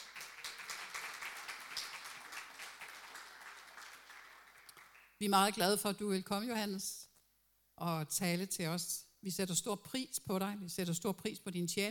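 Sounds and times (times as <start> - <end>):
audience applause: 0.0 - 5.1
speech: 5.2 - 7.0, 7.8 - 11.8.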